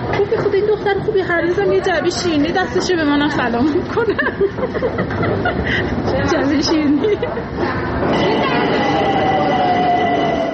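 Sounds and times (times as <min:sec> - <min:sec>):
subway train roaring through a metro station: 0:00.0 - 0:10.5
speech: 0:00.5 - 0:09.1
laughter: 0:03.7 - 0:07.8
thin metallic squealing tones: 0:08.1 - 0:10.5.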